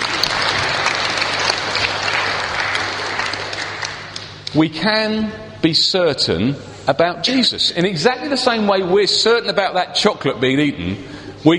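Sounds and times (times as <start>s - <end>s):
audience round of applause: 0.0s - 4.4s
speech: 4.5s - 11.5s.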